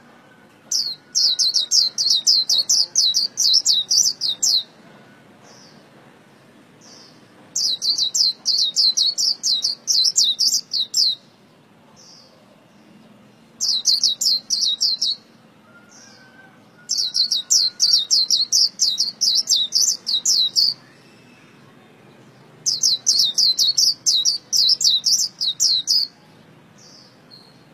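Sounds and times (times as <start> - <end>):
white-eye song of high chirps: 0.7 - 4.8, 6.9 - 11.3, 13.6 - 21.7, 22.3 - 27.7.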